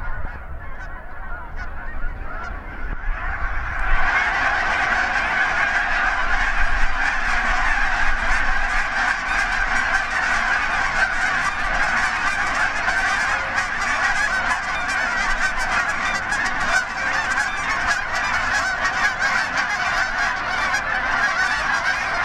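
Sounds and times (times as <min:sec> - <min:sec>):
Canada geese honking at takeoff: 0:00.0 - 0:22.2.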